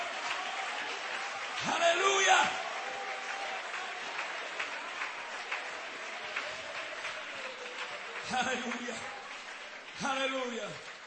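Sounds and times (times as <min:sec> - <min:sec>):
audience clapping hands: 0:00.0 - 0:11.0
speech: 0:08.3 - 0:09.1, 0:10.0 - 0:10.9.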